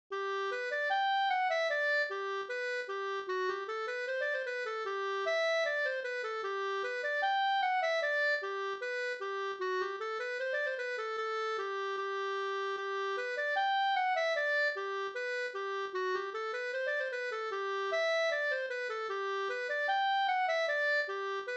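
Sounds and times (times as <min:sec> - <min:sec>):
reinlender folk dance music: 0:00.8 - 0:21.5.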